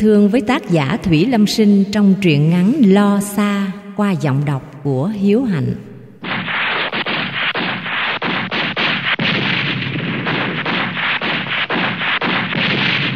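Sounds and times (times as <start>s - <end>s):
speech: 0.0s - 5.9s
grenade explosions in a shelter: 6.2s - 13.1s.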